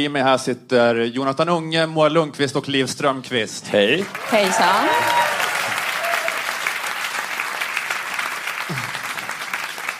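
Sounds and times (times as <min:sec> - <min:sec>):
speech: 0:00.0 - 0:05.2
live audience applause at Skalateatern in Stockholm: 0:03.9 - 0:09.9.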